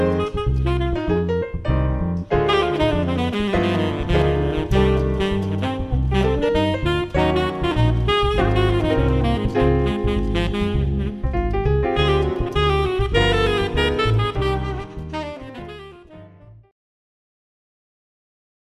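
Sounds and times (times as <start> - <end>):
jazz bossa trio with saxophone: 0.0 - 16.7.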